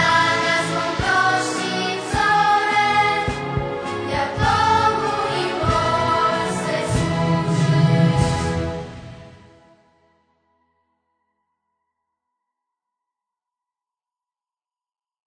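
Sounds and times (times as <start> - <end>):
hymn: 0.0 - 9.4.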